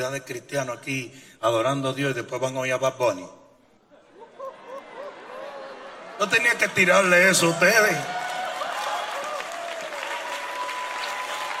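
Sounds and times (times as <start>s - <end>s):
speech: 0.0s - 3.4s, 6.2s - 8.2s
laughter: 3.9s - 7.6s
audience applause: 4.7s - 11.5s.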